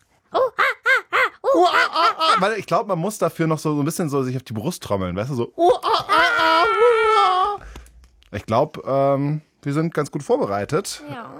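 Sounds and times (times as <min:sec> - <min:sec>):
person imitating monkey hooting calls: 0:00.3 - 0:02.6, 0:05.6 - 0:07.6
speech: 0:02.4 - 0:07.3, 0:08.3 - 0:11.3.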